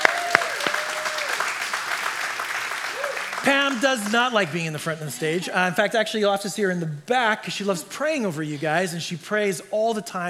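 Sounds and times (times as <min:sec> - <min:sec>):
church congregation applauding a guest: 0:00.0 - 0:05.7
laughter: 0:00.0 - 0:10.2
speech: 0:03.4 - 0:10.2.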